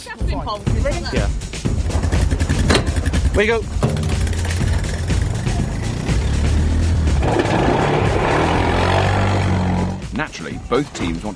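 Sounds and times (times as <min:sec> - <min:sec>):
speech: 0:00.0 - 0:01.6, 0:03.4 - 0:03.9, 0:10.2 - 0:11.3
quad bike engines driving off: 0:01.8 - 0:10.0.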